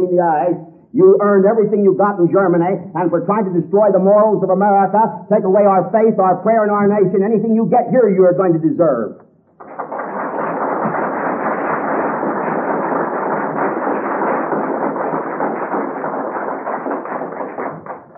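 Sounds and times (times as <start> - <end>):
speech: 0.1 - 9.7
audience applause: 9.6 - 18.1.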